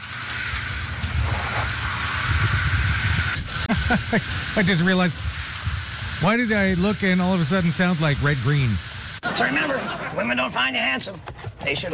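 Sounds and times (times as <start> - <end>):
brushing dirt off an air conditioner: 0.3 - 8.8
laughter: 3.6 - 4.6, 9.2 - 10.5
speech: 3.9 - 5.3, 6.2 - 11.9.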